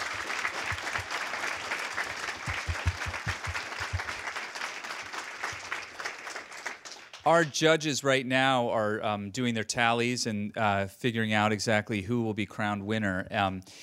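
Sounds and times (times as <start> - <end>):
audience applause: 0.0 - 7.5
speech: 7.2 - 13.8.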